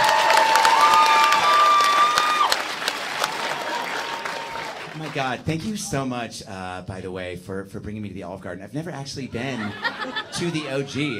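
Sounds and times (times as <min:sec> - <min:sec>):
crowd applauding: 0:00.0 - 0:05.7
speech: 0:05.2 - 0:11.1
laughter: 0:09.4 - 0:11.1.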